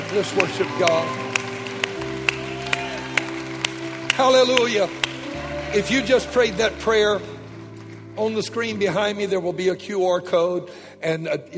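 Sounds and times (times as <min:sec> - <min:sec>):
rhythmic clapping: 0:00.0 - 0:09.0
speech: 0:00.1 - 0:01.4, 0:04.2 - 0:05.1, 0:05.7 - 0:07.3, 0:08.2 - 0:11.5.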